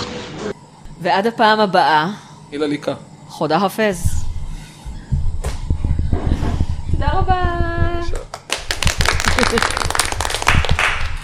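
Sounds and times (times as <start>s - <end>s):
speech: 0.4s - 4.2s, 7.0s - 7.7s
steady tone: 3.9s - 8.1s
hand clapping: 8.1s - 11.2s.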